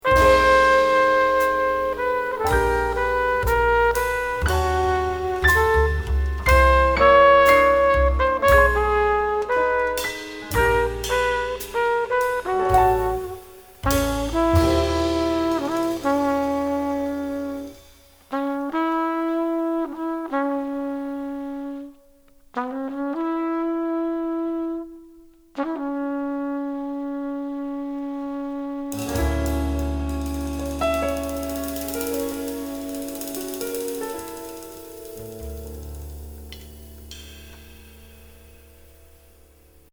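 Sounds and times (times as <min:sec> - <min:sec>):
trumpet: 0:00.0 - 0:39.6.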